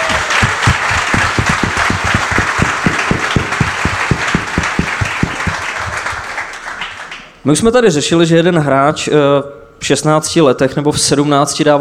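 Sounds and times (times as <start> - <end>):
small group applauding: 0.0 - 7.4
speech: 7.4 - 11.7.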